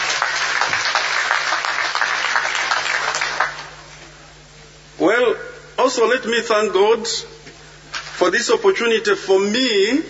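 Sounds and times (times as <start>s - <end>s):
audience clapping: 0.0s - 3.9s
speech: 5.9s - 7.4s, 8.2s - 10.0s.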